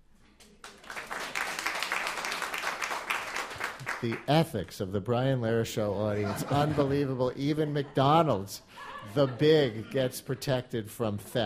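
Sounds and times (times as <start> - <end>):
audience clapping: 0.4 - 4.5
speech: 4.0 - 11.4
laughter: 5.9 - 11.3.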